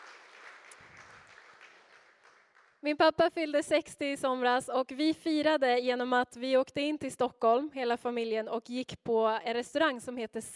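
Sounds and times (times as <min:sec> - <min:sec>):
audience applause for a man's 60th birthday: 0:00.0 - 0:02.8
speech: 0:02.8 - 0:10.5.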